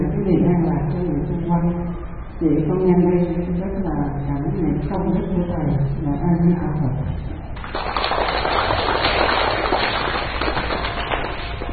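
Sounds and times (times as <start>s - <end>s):
speech: 0.3s - 7.9s
audience applause: 7.6s - 11.7s.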